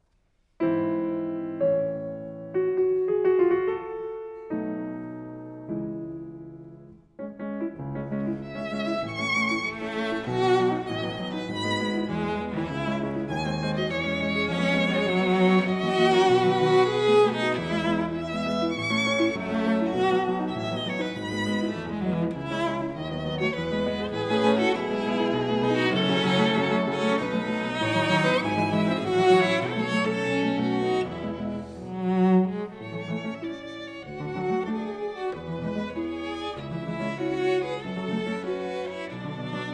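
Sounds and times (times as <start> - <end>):
piano trio andante: 0.6 - 39.7.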